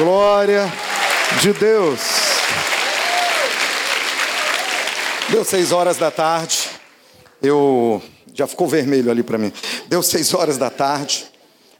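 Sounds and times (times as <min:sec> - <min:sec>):
speech: 0:00.0 - 0:02.6, 0:05.3 - 0:06.6, 0:07.4 - 0:11.3
crowd applause: 0:00.0 - 0:07.4.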